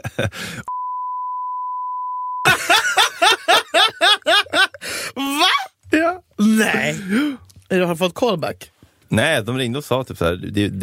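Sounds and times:
laughter: 0:00.0 - 0:00.4, 0:02.5 - 0:04.8
speech: 0:00.2 - 0:00.7, 0:06.6 - 0:10.8
censor beep: 0:00.7 - 0:02.5.

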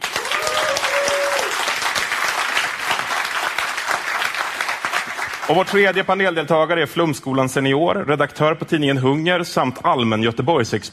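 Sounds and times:
audience applause: 0:00.0 - 0:06.0
speech: 0:05.5 - 0:10.9.

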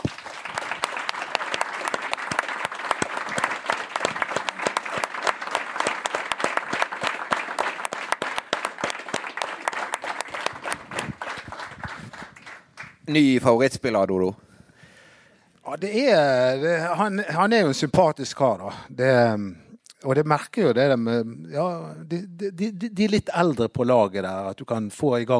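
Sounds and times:
applause: 0:00.0 - 0:13.4
speech: 0:13.1 - 0:14.4, 0:15.8 - 0:25.3.

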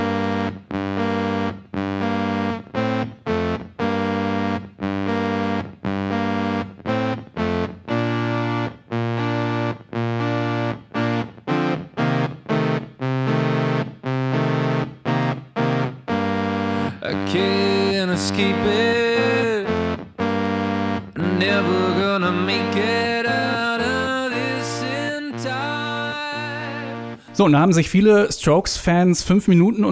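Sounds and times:
heavily distorted indie rock track: 0:00.0 - 0:28.2
speech: 0:27.4 - 0:29.9.

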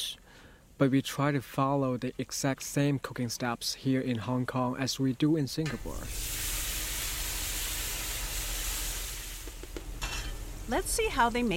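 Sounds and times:
speech: 0:00.8 - 0:06.3, 0:10.7 - 0:11.5
garlic and pandan leaves frying in oil: 0:05.7 - 0:11.5.

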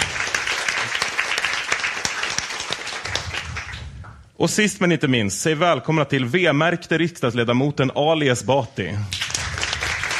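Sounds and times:
crowd applauding: 0:00.0 - 0:04.2, 0:09.1 - 0:10.1
speech: 0:04.4 - 0:09.2.

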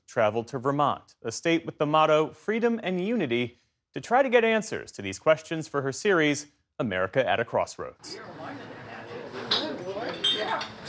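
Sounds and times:
speech: 0:00.2 - 0:08.6
diner customers chattering: 0:08.0 - 0:10.8
dishes and cutlery clattering at a busy diner in Chester, Vermont: 0:09.0 - 0:10.8.

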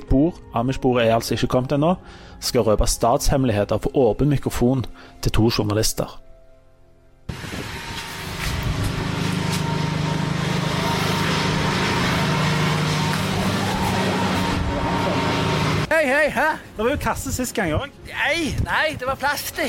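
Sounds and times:
speech: 0:00.2 - 0:06.2, 0:16.3 - 0:19.6
ride-on lawn mower tractor engine: 0:07.3 - 0:15.9.

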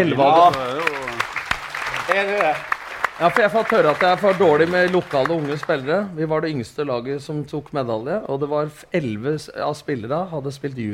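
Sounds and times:
speech: 0:00.0 - 0:01.1, 0:02.1 - 0:10.9
audience applause: 0:00.0 - 0:06.0.

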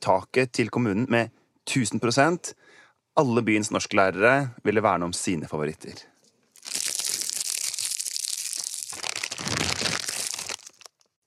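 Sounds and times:
speech: 0:00.0 - 0:06.1
hands rummaging through a bowl of wrapped candies, crinkling plastic wrappers: 0:06.6 - 0:11.2.

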